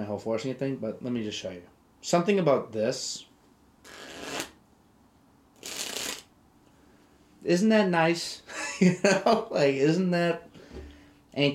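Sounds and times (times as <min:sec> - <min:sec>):
speech: 0:00.1 - 0:04.0, 0:07.4 - 0:11.5
deck of playing cards being shuffled: 0:03.9 - 0:04.6, 0:05.6 - 0:06.3.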